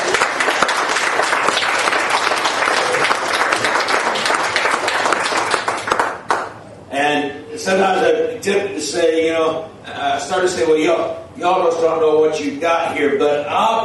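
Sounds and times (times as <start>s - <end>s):
audience applause: 0.0s - 6.5s
speech: 7.6s - 13.8s.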